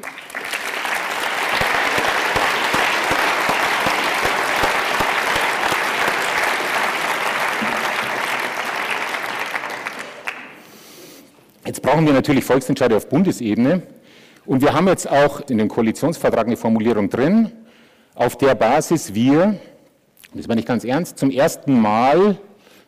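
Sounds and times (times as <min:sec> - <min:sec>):
audience applause: 0:00.0 - 0:10.7
speech: 0:11.9 - 0:17.6, 0:18.2 - 0:19.7, 0:20.3 - 0:22.5.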